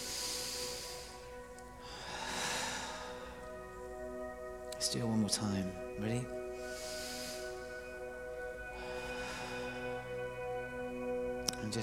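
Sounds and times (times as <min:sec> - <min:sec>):
deep breath in through the nose and out through the mouth: 0:00.0 - 0:04.0, 0:06.4 - 0:11.1
music: 0:00.0 - 0:11.8
speech: 0:04.8 - 0:06.4.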